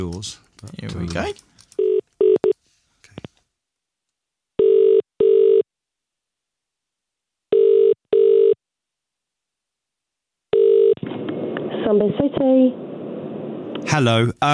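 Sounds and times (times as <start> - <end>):
speech: 0.0 - 1.5, 11.8 - 12.9, 13.8 - 14.5
telephone ringback tone: 4.6 - 5.6, 7.5 - 8.6, 10.5 - 11.0.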